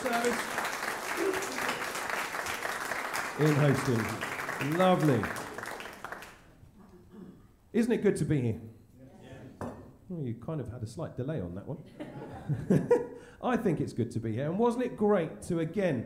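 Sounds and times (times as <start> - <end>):
audience applause: 0.0 - 6.5
speech: 0.1 - 0.7, 3.4 - 5.4, 7.7 - 8.7, 10.1 - 16.0
laughter: 1.1 - 1.9, 11.9 - 13.1.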